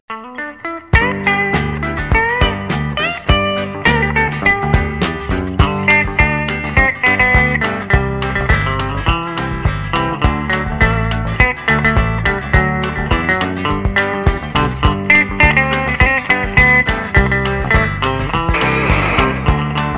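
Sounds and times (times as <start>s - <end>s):
guitar instrumental: 0.1s - 19.9s.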